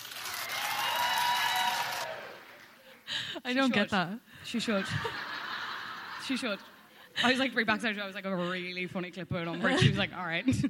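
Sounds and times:
audience clapping: 0.0s - 3.1s
speech: 3.4s - 5.3s, 6.3s - 10.6s
laughter: 4.6s - 7.6s.

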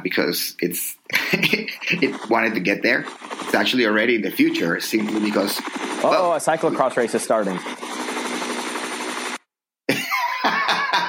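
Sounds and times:
speech: 0.0s - 7.8s
laughter: 1.1s - 2.7s, 9.9s - 11.0s
helicopter sound effect: 1.5s - 9.4s.

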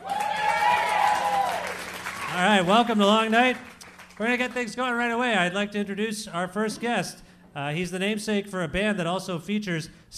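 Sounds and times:
audience cheering: 0.0s - 3.0s
speech: 2.4s - 10.1s.

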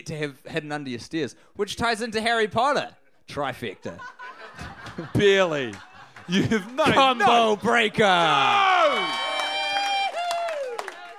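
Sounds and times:
speech: 0.0s - 9.2s
laughter: 3.8s - 8.5s
scattered clapping: 4.8s - 11.1s
live crowd cheering and whooping: 6.8s - 11.1s.

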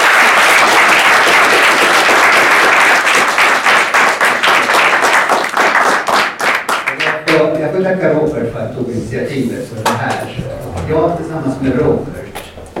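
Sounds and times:
audience applause: 0.0s - 7.2s
speech: 7.9s - 12.2s.

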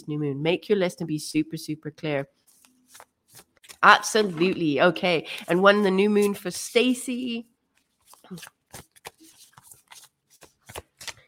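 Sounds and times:
speech: 0.0s - 2.4s, 3.8s - 7.5s, 8.3s - 8.9s
cards shuffled for a card reading: 2.4s - 4.7s, 7.7s - 11.2s.

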